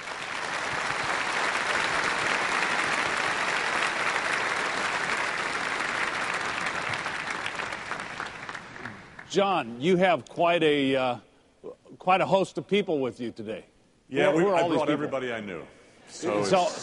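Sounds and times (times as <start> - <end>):
audience applause welcoming a guest on stage: 0.0 - 9.3
speech: 9.3 - 11.3, 12.0 - 16.8.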